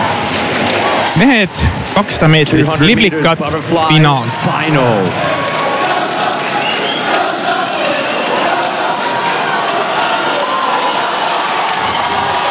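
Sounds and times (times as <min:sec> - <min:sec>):
huge stadium crowd roaring and cheering: 0:00.0 - 0:12.5
speech: 0:01.2 - 0:05.5
crowd whistles: 0:06.4 - 0:07.2.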